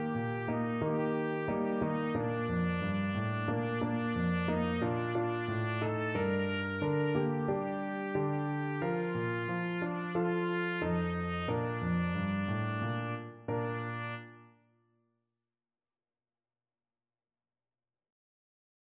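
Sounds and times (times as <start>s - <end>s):
two trumpets playing: 0.0s - 14.5s.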